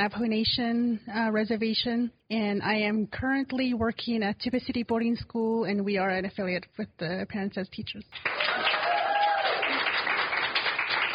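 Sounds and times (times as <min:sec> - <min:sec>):
speech: 0:00.0 - 0:08.8
audience applause: 0:08.2 - 0:11.1.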